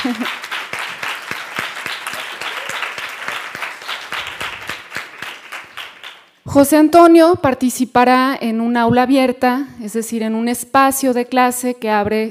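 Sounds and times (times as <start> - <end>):
speech: 0.0 - 0.5, 6.6 - 12.3
audience applause: 0.0 - 6.3.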